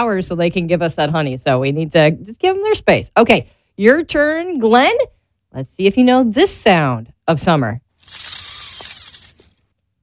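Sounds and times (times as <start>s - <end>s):
speech: 0.0s - 8.4s
fishing reel clicking as a line is cast: 8.0s - 9.5s.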